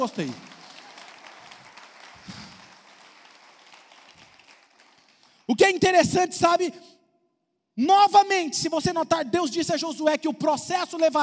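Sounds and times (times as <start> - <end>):
speech: 0.0 - 0.5, 5.5 - 7.0, 7.8 - 11.2
audience applause: 0.0 - 5.5.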